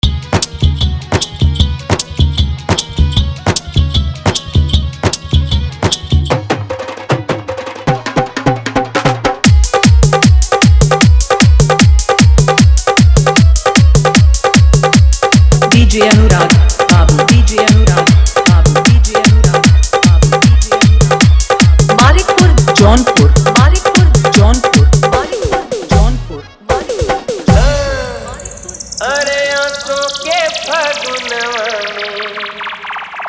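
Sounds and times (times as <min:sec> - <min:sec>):
hard Bhojpuri dholak drumming for Holi: 0:00.0 - 0:31.6.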